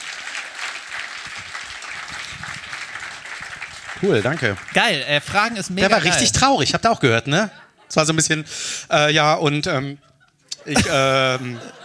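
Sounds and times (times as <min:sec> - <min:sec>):
audience applause: 0:00.0 - 0:06.2
speech: 0:04.0 - 0:11.8
laughter: 0:10.0 - 0:11.8.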